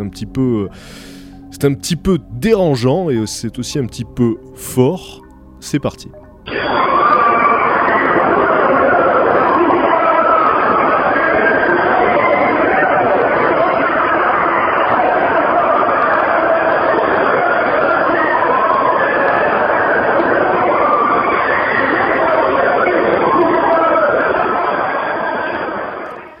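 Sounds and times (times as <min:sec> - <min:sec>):
speech: 0:00.1 - 0:07.2
damned people screaming in hell: 0:06.5 - 0:26.3.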